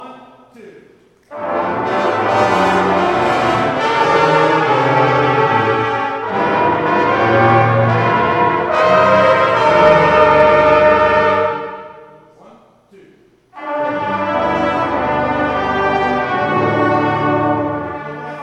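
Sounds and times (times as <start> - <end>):
brass melody: 1.3 - 12.3, 13.5 - 18.4.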